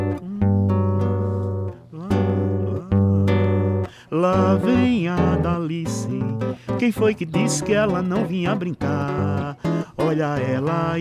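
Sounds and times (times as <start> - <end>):
frevo song playing: 0.0 - 11.0
speech: 4.1 - 9.1, 10.1 - 11.0.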